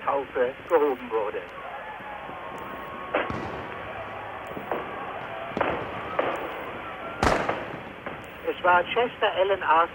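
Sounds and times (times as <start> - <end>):
hiss and murmur: 0.0 - 9.9
speech: 0.1 - 1.7, 8.6 - 9.9
fireworks and firecrackers crackling: 2.0 - 9.1.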